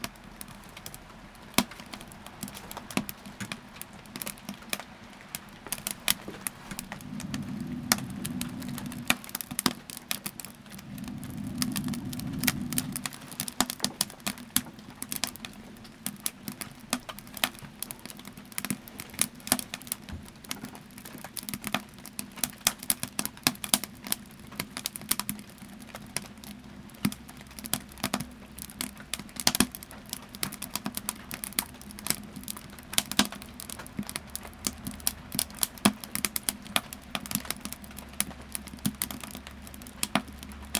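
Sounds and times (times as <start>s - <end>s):
rain on a cabin porch: 0.0s - 40.7s
wood stove in a cabin: 0.0s - 40.7s.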